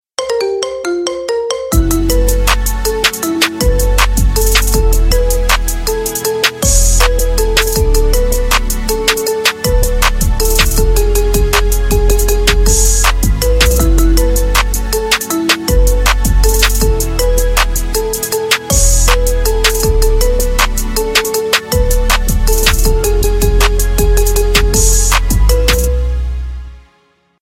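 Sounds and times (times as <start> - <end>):
marimba remix: 0.2 - 26.0.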